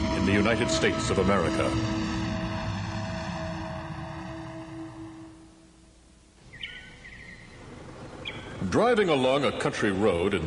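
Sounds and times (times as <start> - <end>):
roaring spaceship descending through the sky: 0.0 - 5.6
speech: 0.3 - 2.0, 8.7 - 10.4.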